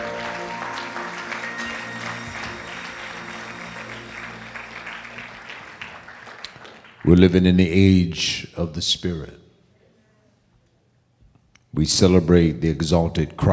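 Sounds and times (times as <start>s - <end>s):
sustained tones: 0.0s - 6.0s
church congregation clapping to welcome the Holy Ghost during worship: 0.0s - 7.7s
speech: 7.0s - 9.4s, 11.8s - 13.5s.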